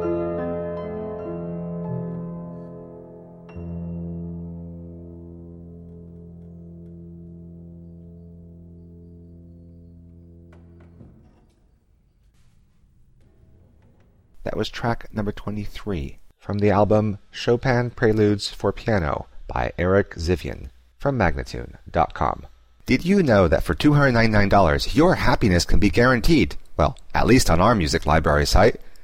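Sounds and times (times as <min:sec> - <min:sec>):
piano prelude: 0:00.0 - 0:16.3
person speaking: 0:13.9 - 0:28.8.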